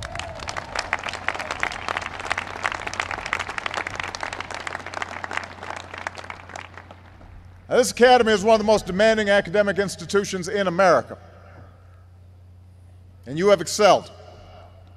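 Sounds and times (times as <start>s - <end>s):
audience applause: 0.0s - 7.2s
speech: 7.7s - 11.3s, 13.3s - 14.2s.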